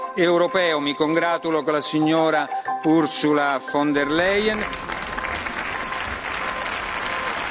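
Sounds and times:
speech: 0.1s - 4.9s
applause from a large crowd in a parliament chamber: 4.0s - 7.5s.

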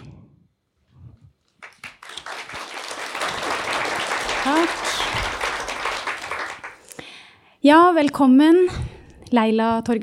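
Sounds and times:
audience applause: 1.6s - 6.9s
speech: 4.4s - 5.0s, 7.6s - 10.0s.

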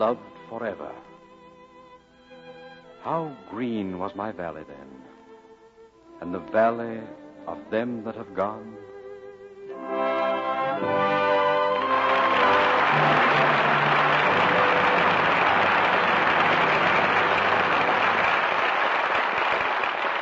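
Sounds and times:
speech: 0.0s - 1.1s, 3.0s - 5.1s, 6.2s - 8.9s
music with a tonal melody: 9.7s - 18.3s
audience applause: 10.8s - 20.2s.

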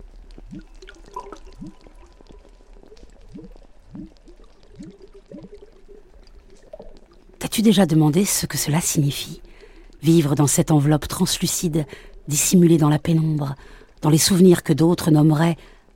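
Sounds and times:
water gurgling: 0.0s - 15.4s
speech: 7.6s - 9.4s, 10.0s - 15.8s.

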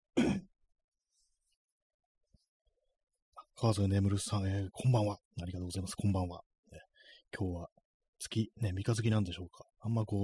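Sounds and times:
throat clearing: 0.2s - 0.5s
speech: 3.6s - 10.2s.

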